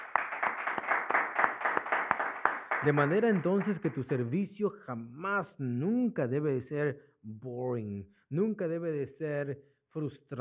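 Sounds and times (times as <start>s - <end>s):
church congregation clapping in praise during a worship service: 0.0s - 4.5s
speech: 2.8s - 10.4s.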